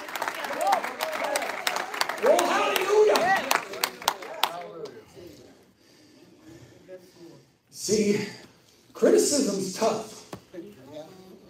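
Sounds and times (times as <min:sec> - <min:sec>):
church congregation clapping and stomping during a morning service: 0:00.0 - 0:04.6
speech: 0:07.9 - 0:08.4, 0:09.8 - 0:10.1.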